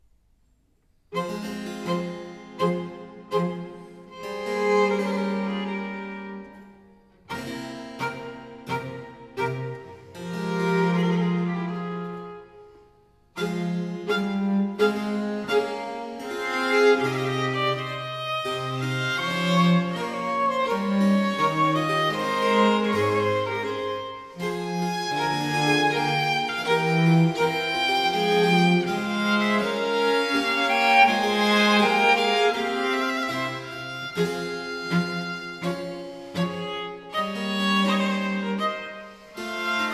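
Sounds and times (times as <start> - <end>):
larghetto sonata music in A major: 0.8 - 39.9.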